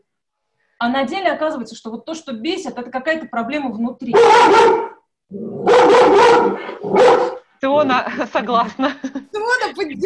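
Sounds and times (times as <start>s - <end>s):
speech: 0.8s - 10.0s
dog barking: 4.1s - 5.0s, 5.6s - 7.4s.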